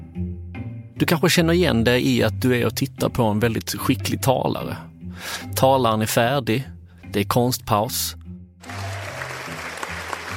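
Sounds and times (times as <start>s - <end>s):
speech: 1.0s - 8.9s
audience applauding together: 8.6s - 10.3s.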